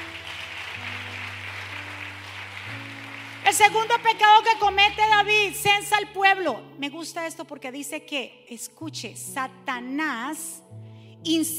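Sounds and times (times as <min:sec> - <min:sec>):
loud applause: 0:00.0 - 0:03.8
sustained low keyboard chords: 0:00.0 - 0:06.9
speech: 0:03.5 - 0:11.5.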